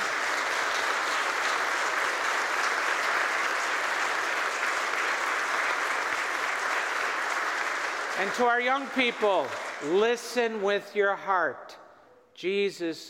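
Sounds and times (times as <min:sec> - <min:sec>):
audience applause: 0:00.0 - 0:10.0
speech: 0:08.2 - 0:11.8, 0:12.4 - 0:13.0.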